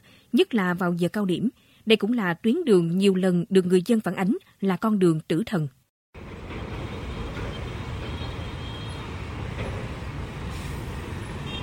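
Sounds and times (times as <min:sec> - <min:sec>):
speech: 0:00.3 - 0:05.8
container trucks and lorries on Nguyen Duy Trinh road: 0:06.2 - 0:11.6.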